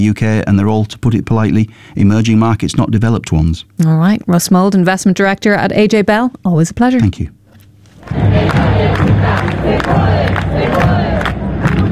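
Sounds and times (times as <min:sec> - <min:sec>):
speech: 0:00.0 - 0:07.4
large crowd of demonstrators chanting and shouting: 0:08.0 - 0:11.8
rhythmic bursts and thumps: 0:08.0 - 0:11.8.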